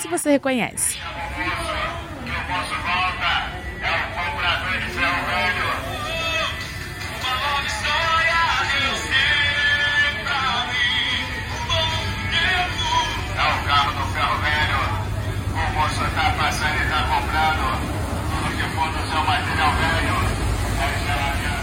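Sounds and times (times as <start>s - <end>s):
speech: 0.0s - 1.7s
gospel song over a loudspeaker on a circulating van: 1.0s - 21.6s.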